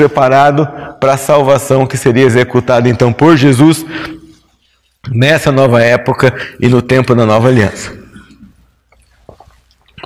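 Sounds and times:
speech: 0:00.0 - 0:04.2, 0:05.0 - 0:08.0
person sipping water: 0:08.1 - 0:10.0
swallowing and gulping: 0:08.1 - 0:10.0.

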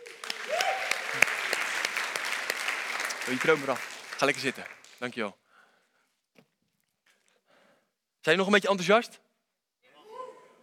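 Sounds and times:
audience applause: 0:00.0 - 0:05.2
speech: 0:03.3 - 0:05.4, 0:08.2 - 0:09.2.

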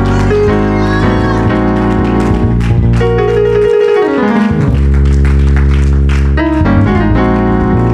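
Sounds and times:
audience clapping: 0:00.0 - 0:07.9.

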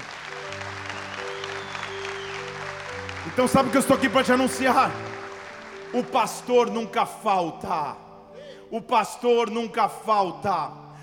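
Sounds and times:
audience applause: 0:00.0 - 0:06.7
sustained low keyboard chords: 0:00.0 - 0:11.0
speech: 0:03.3 - 0:05.2, 0:05.9 - 0:08.0, 0:08.7 - 0:10.8.

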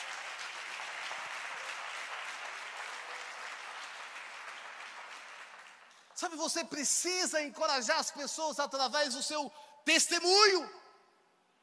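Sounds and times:
audience applause: 0:00.0 - 0:06.4
speech: 0:06.2 - 0:10.8.

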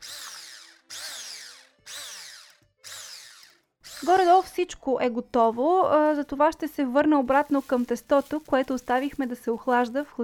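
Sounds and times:
electric hand mixer whisking: 0:00.0 - 0:06.4
speech: 0:04.0 - 0:10.2.

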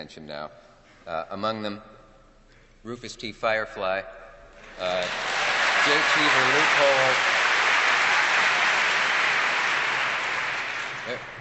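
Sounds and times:
speech: 0:00.0 - 0:02.0, 0:02.8 - 0:07.4, 0:11.1 - 0:11.3
audience applause: 0:04.6 - 0:11.3.

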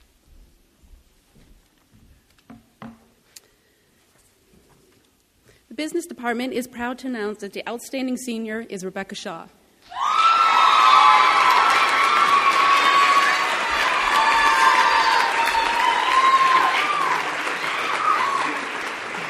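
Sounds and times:
speech: 0:05.8 - 0:09.6
audience clapping: 0:10.5 - 0:19.2.

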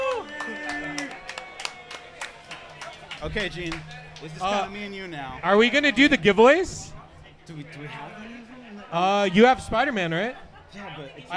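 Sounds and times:
people clapping: 0:00.0 - 0:04.8
speech: 0:03.2 - 0:11.3.

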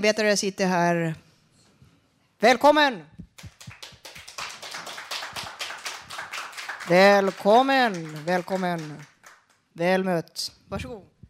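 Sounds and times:
speech: 0:00.0 - 0:01.2, 0:02.4 - 0:03.5, 0:06.9 - 0:09.1, 0:09.8 - 0:11.1
audience applause: 0:03.4 - 0:09.6.

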